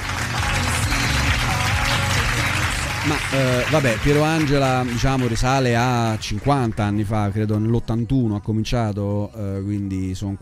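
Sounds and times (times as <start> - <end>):
audience applause: 0.0 - 7.1
speech: 3.1 - 10.4.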